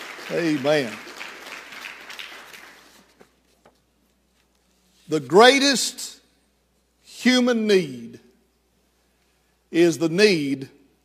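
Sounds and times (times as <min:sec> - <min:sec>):
audience hand clapping: 0:00.0 - 0:03.4
speech: 0:00.3 - 0:01.1, 0:05.1 - 0:06.2, 0:07.2 - 0:08.3, 0:09.7 - 0:10.8.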